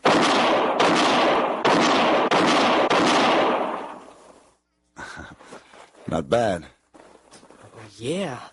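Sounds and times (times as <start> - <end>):
gunshots in a quick-draw shooting contest: 0.0 - 4.1
speech: 6.1 - 6.8, 8.0 - 8.5.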